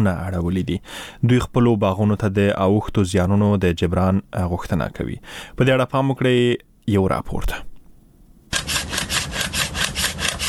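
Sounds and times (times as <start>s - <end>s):
speech: 0.0s - 7.7s
hand saw cutting down pomegranate orchard trees in Arghandab district, Kandahar: 8.5s - 10.4s.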